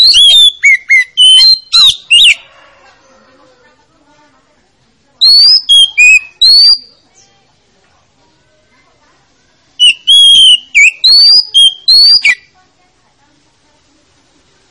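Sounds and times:
Oriental magpie-robin singing: 0.0 - 2.4, 5.2 - 6.9, 9.8 - 12.5.

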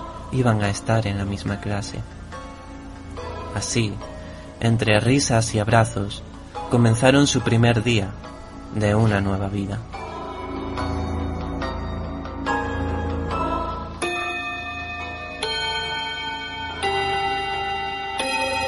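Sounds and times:
speech: 0.3 - 2.2, 3.6 - 10.0
clock bell chiming: 10.5 - 18.6.

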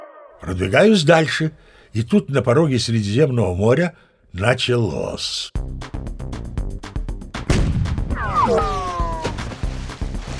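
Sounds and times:
speech: 0.4 - 6.0
sharp blasts: 7.5 - 8.9
heavy rumbling explosion: 7.5 - 9.2
shells striking the sea, water crashing: 7.5 - 10.3.

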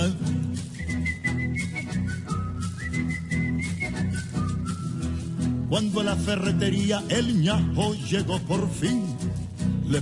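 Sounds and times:
busy rhythmic music: 0.0 - 10.0
person whistling a short bright tune: 0.6 - 5.3
speech: 5.7 - 10.0.

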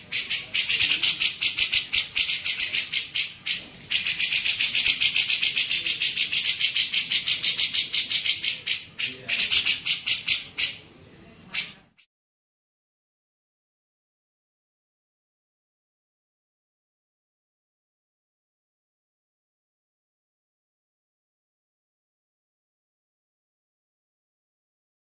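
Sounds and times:
grey-cheeked bulbul chattering rasping notes: 0.0 - 12.0.

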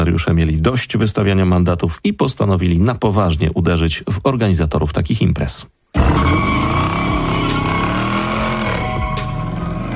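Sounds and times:
speech: 0.0 - 6.5
cars drifting with skidding tyres: 6.0 - 9.9.

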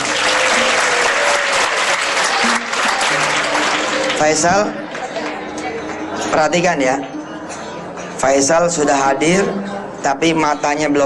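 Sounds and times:
audience applause: 0.0 - 5.4
speech: 4.2 - 4.8, 6.3 - 7.1, 8.2 - 11.0.

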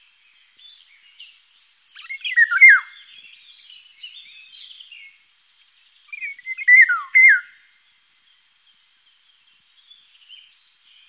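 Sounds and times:
small birds twittering: 0.0 - 11.0
Eurasian golden oriole fluty yodelling whistle: 2.0 - 3.0, 6.2 - 7.6.

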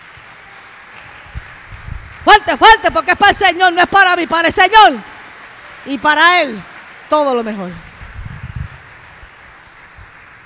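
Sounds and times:
audience applauding: 0.0 - 10.4
speech: 2.3 - 5.1, 5.8 - 7.8.

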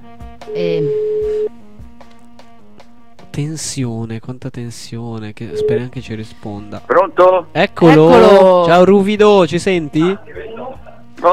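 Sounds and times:
speech: 0.1 - 1.0, 3.4 - 10.5
telephone ringback tone: 0.5 - 1.5, 5.5 - 5.9.

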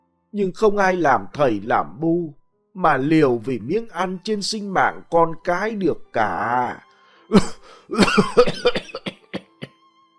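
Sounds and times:
speech: 0.3 - 9.0
violent fit of coughing: 7.3 - 9.7.

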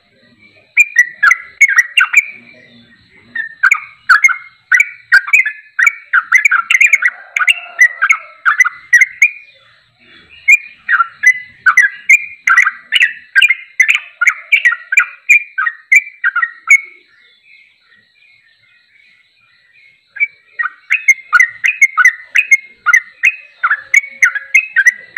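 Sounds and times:
champion bulbul singing in tembakan style: 0.0 - 25.1.

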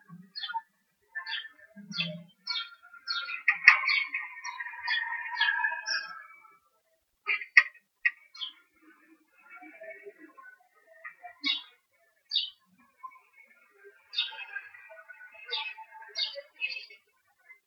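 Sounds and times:
bird chirps in Murcia Spain: 0.0 - 6.4, 7.3 - 8.6, 10.9 - 13.4, 14.0 - 17.0.

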